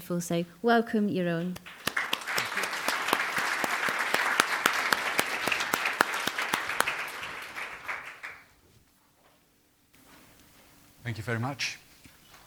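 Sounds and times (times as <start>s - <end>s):
speech: 0.1s - 1.8s, 11.1s - 11.8s
audience applause welcoming a keynote speaker at a conference: 1.6s - 8.5s.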